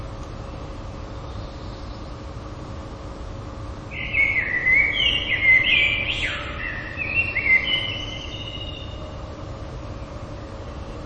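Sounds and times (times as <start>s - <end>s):
common blackbird whistled song: 3.9s - 9.1s.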